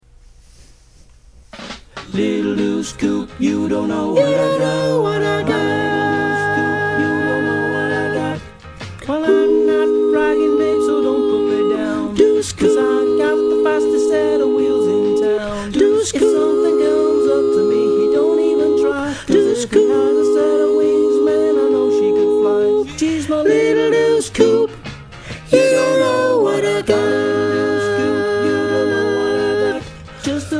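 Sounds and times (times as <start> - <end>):
soprano singing: 2.1 - 8.5, 9.1 - 24.8, 25.5 - 30.5.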